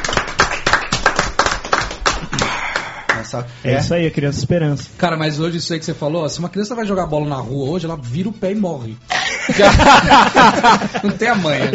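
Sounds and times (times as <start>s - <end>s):
hand clapping: 0.0s - 3.4s
speech: 3.3s - 11.7s
laughter: 9.1s - 11.7s.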